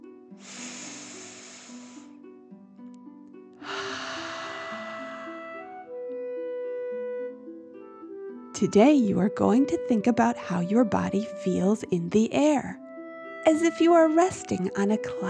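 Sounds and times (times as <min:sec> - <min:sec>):
gentle sustained music: 0:00.0 - 0:15.2
deep slow breaths in and out: 0:00.4 - 0:02.2, 0:03.6 - 0:05.7
speech: 0:08.6 - 0:12.8, 0:13.5 - 0:15.2.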